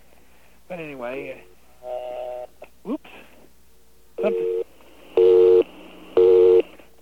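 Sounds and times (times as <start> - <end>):
speech: 0.7 - 2.2
telephone busy signal: 4.2 - 6.7.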